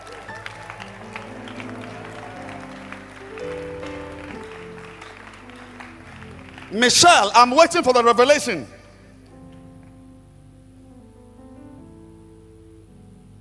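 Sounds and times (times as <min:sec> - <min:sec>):
audience clapping: 0:00.0 - 0:08.6
speech: 0:06.7 - 0:08.8.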